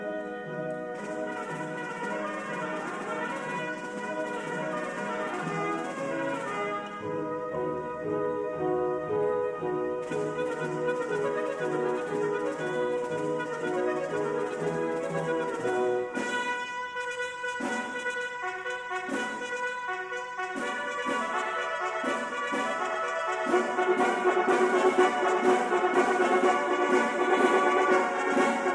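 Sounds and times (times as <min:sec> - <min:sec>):
orchestra playing: 0:00.0 - 0:28.7
symphonic choir singing: 0:23.5 - 0:28.7.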